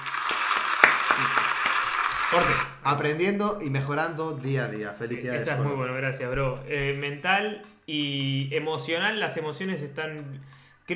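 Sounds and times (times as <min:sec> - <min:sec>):
applause sound effect: 0:00.0 - 0:02.8
speech: 0:02.3 - 0:10.9.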